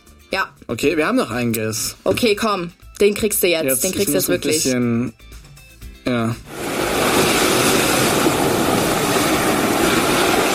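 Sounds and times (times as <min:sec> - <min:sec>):
speech: 0:00.3 - 0:05.3, 0:06.0 - 0:06.6
waves: 0:06.5 - 0:10.5.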